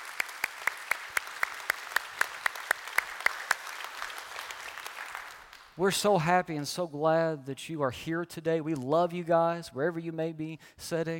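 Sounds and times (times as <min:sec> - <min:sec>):
church congregation applauding to welcome visiting members: 0:00.0 - 0:05.9
speech: 0:05.8 - 0:11.1.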